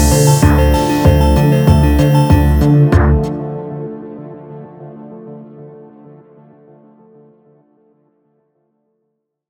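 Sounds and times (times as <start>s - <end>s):
Syntronik TR5 synth pushed hard: 0.0s - 3.6s.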